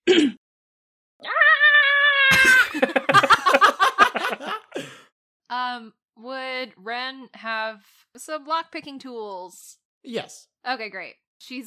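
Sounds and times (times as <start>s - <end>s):
person imitating a tiny rat's scream: 1.2s - 2.7s
person laughing: 2.3s - 5.0s
speech: 5.6s - 11.6s.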